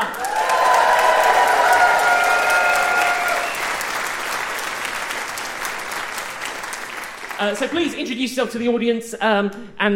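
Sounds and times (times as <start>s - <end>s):
audience cheering: 0.0s - 6.8s
audience clapping welcoming guests at an agricultural media convention live show: 0.0s - 8.1s
speech: 7.4s - 9.9s.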